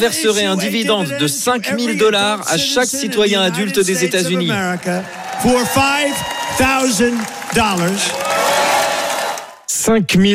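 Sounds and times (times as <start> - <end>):
speech: 0.0 - 8.5, 9.8 - 10.3
crowd shouting and cheering: 3.4 - 9.7.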